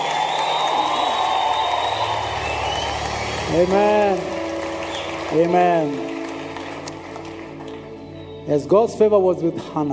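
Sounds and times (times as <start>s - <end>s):
audience clapping and cheering: 0.0s - 8.4s
speech: 3.5s - 4.3s, 5.3s - 6.1s, 8.5s - 9.9s.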